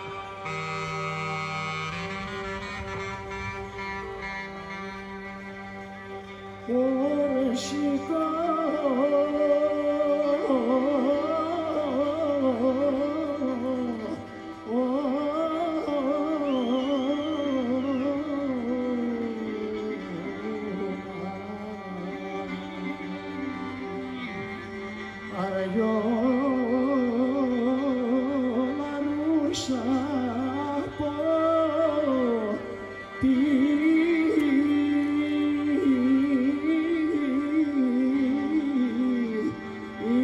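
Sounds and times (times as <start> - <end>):
Sunday park concert music in Athens: 0.0 - 40.2.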